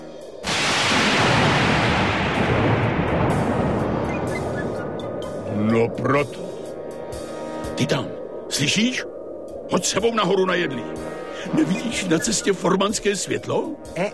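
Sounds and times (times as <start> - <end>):
loud deep rumble of thunder: 0.4 - 8.8
speech: 7.9 - 9.1, 9.7 - 14.1.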